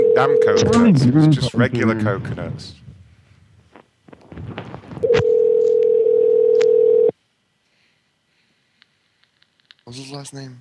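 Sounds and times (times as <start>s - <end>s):
speech: 0.2s - 2.8s, 9.9s - 10.6s
telephone dial tone while a call is dialed: 5.0s - 7.1s.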